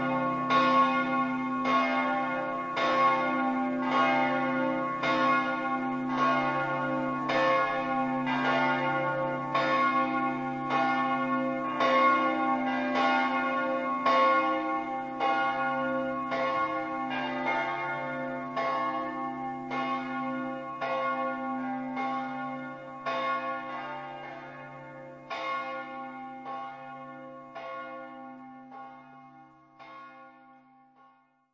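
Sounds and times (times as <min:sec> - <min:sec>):
bells ringing in Malborg: 0:00.0 - 0:31.2.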